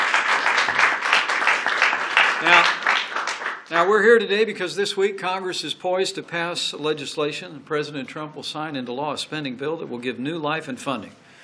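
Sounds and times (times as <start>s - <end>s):
audience applause: 0.0s - 3.7s
speech: 2.4s - 2.8s, 3.7s - 11.2s.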